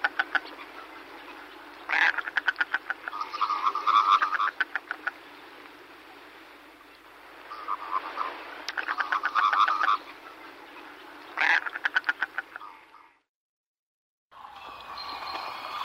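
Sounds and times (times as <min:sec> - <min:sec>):
common merganser Mergus merganser croaking: 0:00.0 - 0:05.2, 0:07.5 - 0:10.1, 0:11.4 - 0:13.1.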